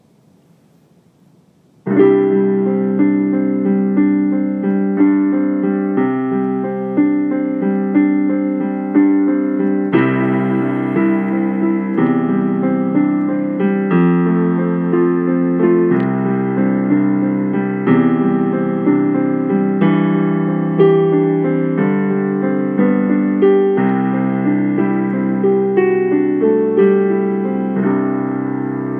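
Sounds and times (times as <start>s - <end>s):
solo piano: 0.0s - 28.9s.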